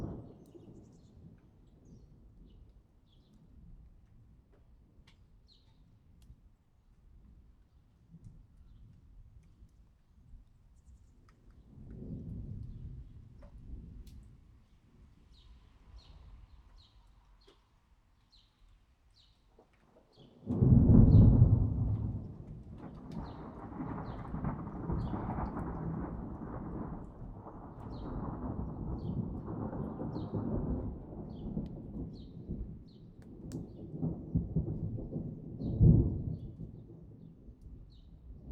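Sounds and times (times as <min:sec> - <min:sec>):
thunder: 0:11.9 - 0:14.0, 0:20.4 - 0:37.2.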